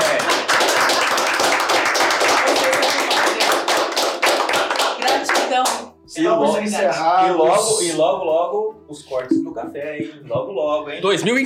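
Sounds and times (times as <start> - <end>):
audience applause: 0.0 - 5.4
speech: 6.6 - 11.4.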